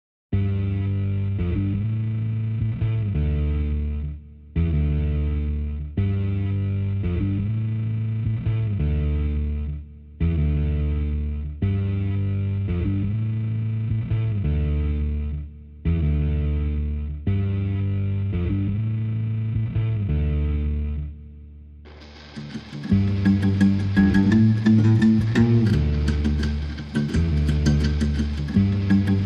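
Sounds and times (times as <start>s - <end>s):
bass: 0.3s - 29.2s
guitars: 0.4s - 29.2s.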